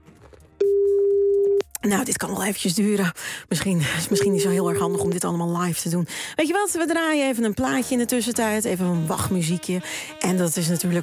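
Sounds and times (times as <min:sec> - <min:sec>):
telephone busy tone while calling a family doctor: 0:00.6 - 0:01.6, 0:04.1 - 0:05.3
speech: 0:01.8 - 0:11.0.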